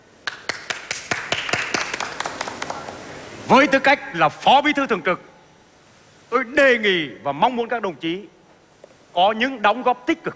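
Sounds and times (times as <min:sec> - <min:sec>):
audience applause at a meeting: 0:00.2 - 0:03.1
speech: 0:03.5 - 0:05.3, 0:06.3 - 0:08.4, 0:09.2 - 0:10.3.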